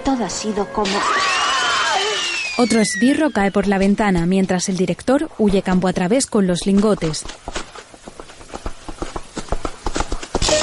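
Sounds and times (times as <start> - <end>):
speech: 0.1 - 1.4, 2.6 - 7.6
horse hooves galloping in pursuit: 3.1 - 10.6.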